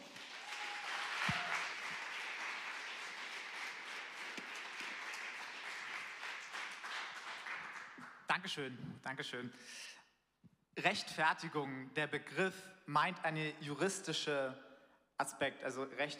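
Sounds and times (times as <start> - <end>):
audience applause: 0.0 - 8.1
speech: 8.4 - 10.0, 10.8 - 16.1.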